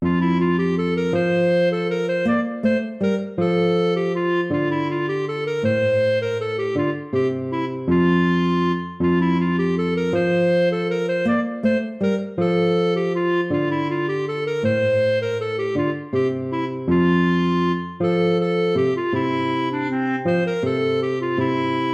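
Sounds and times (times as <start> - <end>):
lute playing: 0.0 - 21.9.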